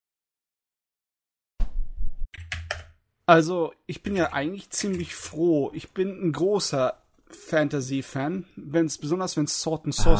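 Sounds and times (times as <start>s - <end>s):
typing on a computer keyboard: 2.4s - 3.0s
speech: 3.3s - 10.1s.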